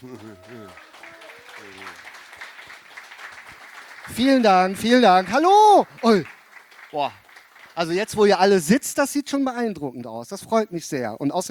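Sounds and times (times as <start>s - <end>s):
speech: 0.0s - 0.9s, 1.6s - 2.2s, 4.1s - 7.2s, 7.8s - 11.4s
audience applause: 0.0s - 8.8s.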